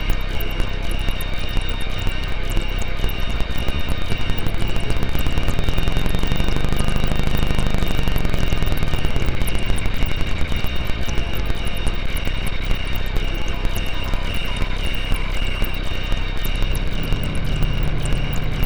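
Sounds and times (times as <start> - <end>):
menacing synth drone: 0.0 - 18.6.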